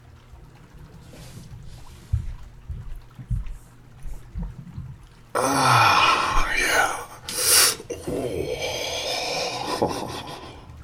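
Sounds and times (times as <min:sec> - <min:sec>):
jacuzzi water sloshing as someone climbs in: 0:00.0 - 0:10.8
soft thuds: 0:01.2 - 0:05.2
speech: 0:05.4 - 0:05.9.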